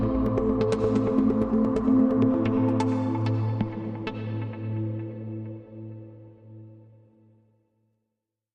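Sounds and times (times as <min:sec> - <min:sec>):
drone without rhythm: 0:00.0 - 0:04.4.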